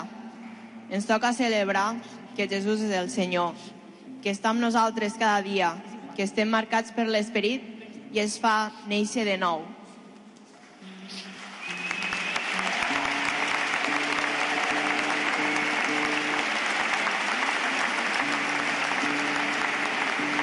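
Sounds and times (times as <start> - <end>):
speech: 0.9 - 9.8
enthusiastic crowd applauding in a cathedral: 10.8 - 20.4.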